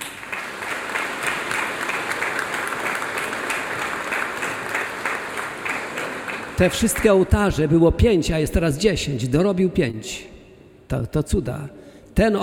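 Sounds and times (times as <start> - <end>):
audience applause: 0.0 - 7.4
speech: 6.6 - 10.3, 10.9 - 12.4.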